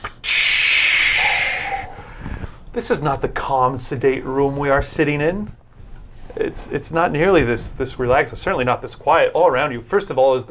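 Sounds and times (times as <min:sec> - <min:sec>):
pneumatic hiss of a blast door opening: 0:00.0 - 0:02.8
speech: 0:02.8 - 0:05.6, 0:06.4 - 0:10.4.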